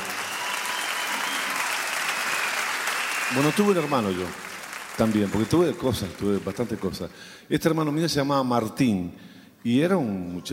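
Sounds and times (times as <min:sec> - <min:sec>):
crowd applause for the band: 0:00.0 - 0:07.1
speech: 0:03.3 - 0:10.5.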